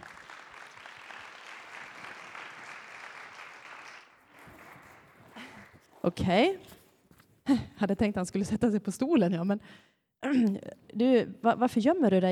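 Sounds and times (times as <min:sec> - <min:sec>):
audience applause: 0:00.0 - 0:05.9
speech: 0:06.0 - 0:06.8, 0:07.5 - 0:12.2.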